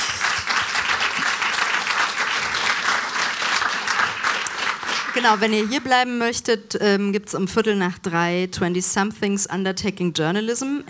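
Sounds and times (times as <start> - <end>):
audience applause: 0.0 - 5.9
speech: 5.2 - 10.8.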